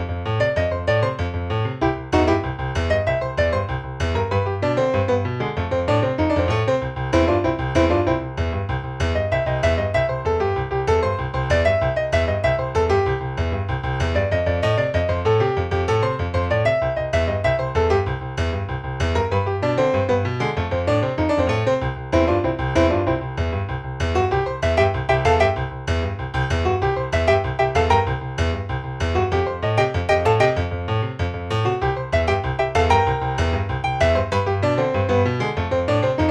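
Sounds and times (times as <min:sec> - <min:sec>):
solo rock boogie piano riff: 0:00.0 - 0:36.2.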